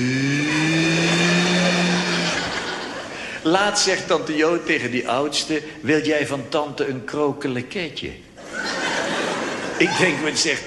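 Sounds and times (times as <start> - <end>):
voice imitating an airplane engine: 0.0 - 2.6
laughter: 0.5 - 3.9, 8.4 - 10.6
speech: 3.4 - 8.3, 9.8 - 10.6.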